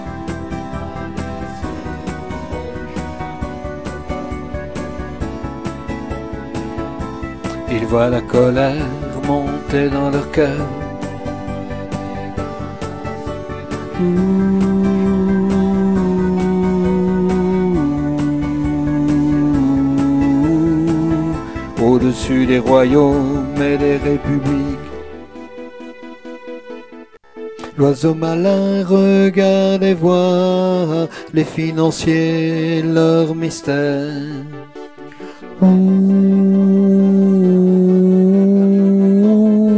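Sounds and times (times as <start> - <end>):
bass: 0.0 - 39.7.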